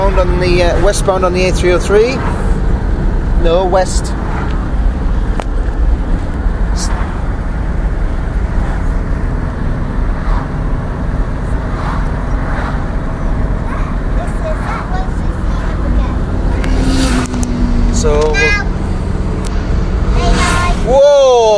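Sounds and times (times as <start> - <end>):
motorbike charging past on the A303: 0.0 - 20.9
heavy road rumble: 0.0 - 21.5
speech: 0.2 - 2.5, 3.4 - 4.5, 18.0 - 18.7.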